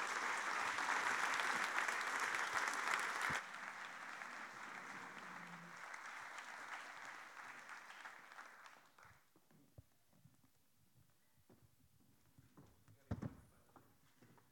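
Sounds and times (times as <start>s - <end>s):
audience applause: 0.0s - 9.2s.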